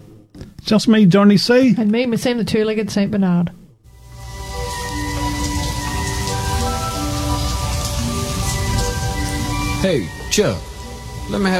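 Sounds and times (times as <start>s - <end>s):
speech: 0.7s - 3.6s, 9.8s - 10.7s, 11.3s - 11.5s
heavy rain falling: 3.9s - 11.5s.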